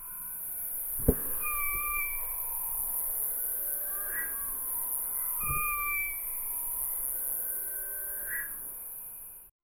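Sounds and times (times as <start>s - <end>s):
owl flying in to fence: 0.9s - 2.9s, 5.2s - 6.4s.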